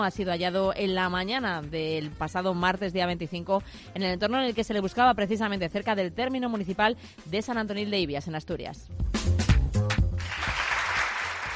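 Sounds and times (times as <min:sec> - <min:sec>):
speech: 0:00.0 - 0:09.4
applause: 0:09.9 - 0:11.5.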